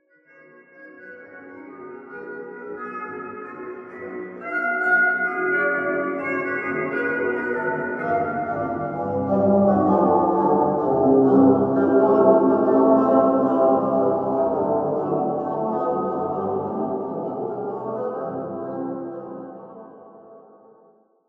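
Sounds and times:
jazz music: 0:03.4 - 0:19.2.

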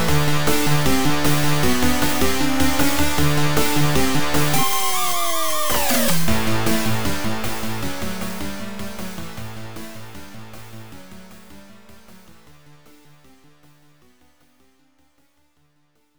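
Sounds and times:
rock music loop: 0:00.0 - 0:04.8, 0:06.0 - 0:10.3.

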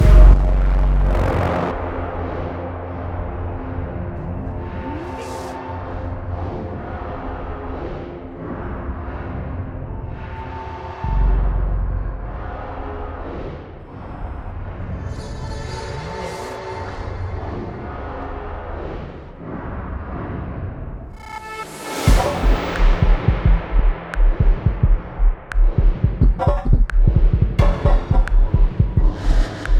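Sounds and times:
ambience: 0:00.0 - 0:29.7.

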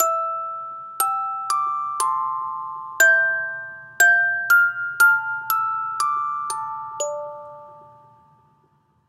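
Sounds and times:
music box: 0:00.0 - 0:09.0.

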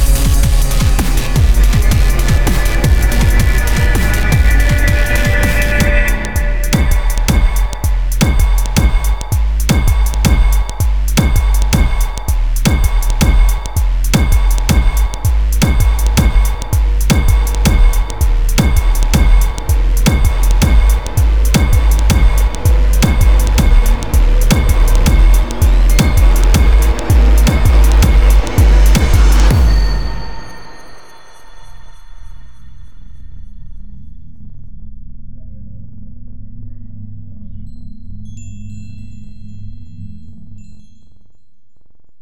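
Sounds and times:
instrumental music: 0:00.0 - 0:31.4.

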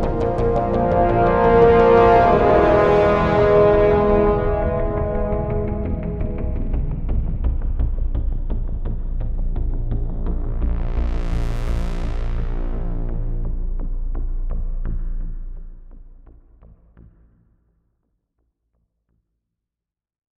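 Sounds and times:
ambient music: 0:00.0 - 0:16.2.

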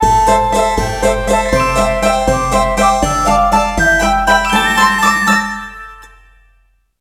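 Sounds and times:
level win jingle: 0:00.5 - 0:06.4.

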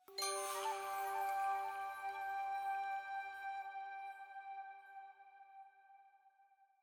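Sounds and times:
chime in G: 0:00.0 - 0:04.4
flute jingle: 0:00.0 - 0:05.2.

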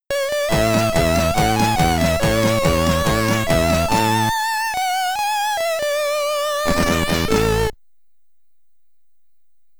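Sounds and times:
Commodore 64 SID chiptune music in stereo: 0:00.1 - 0:07.7.

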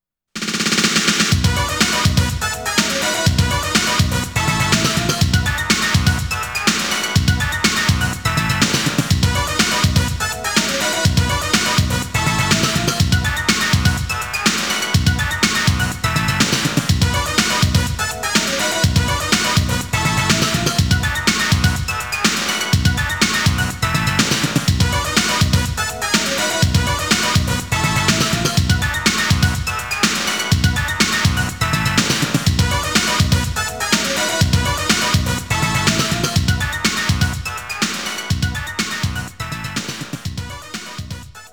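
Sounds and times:
naming background music: 0:01.0 - 0:41.5.

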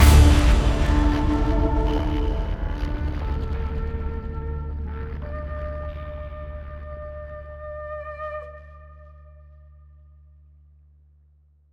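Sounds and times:
psycho horror stinger: 0:00.0 - 0:06.0.

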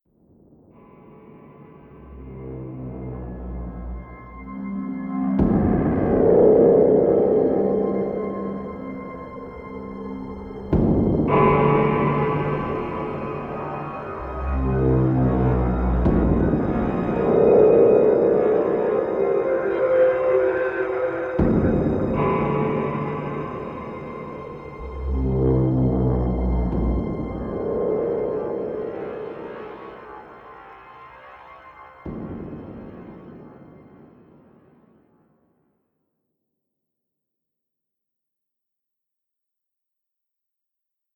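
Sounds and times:
musical stinger: 0:02.1 - 0:31.0.

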